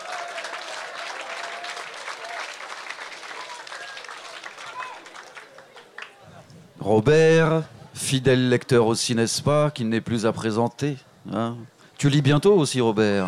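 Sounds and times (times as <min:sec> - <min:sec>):
audience applauding: 0:00.0 - 0:06.4
speech: 0:06.8 - 0:13.2.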